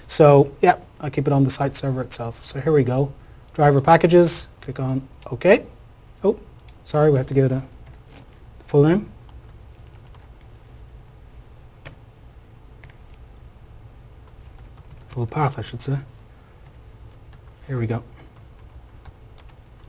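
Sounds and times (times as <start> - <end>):
speech: 0.1 - 7.7, 8.7 - 9.2, 15.2 - 16.1, 17.7 - 18.2
typing on a computer keyboard: 9.3 - 10.3, 14.2 - 15.3, 16.6 - 17.6, 18.2 - 19.8.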